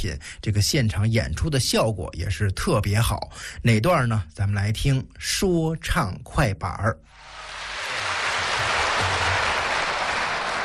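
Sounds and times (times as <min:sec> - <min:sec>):
speech: 0:00.0 - 0:07.5
audience applause: 0:07.2 - 0:10.6.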